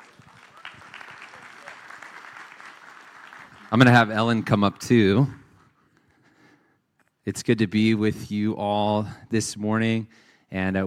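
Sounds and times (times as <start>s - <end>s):
church audience applauding to welcome a guest speaker: 0.0s - 4.4s
speech: 3.7s - 5.4s, 7.2s - 10.8s.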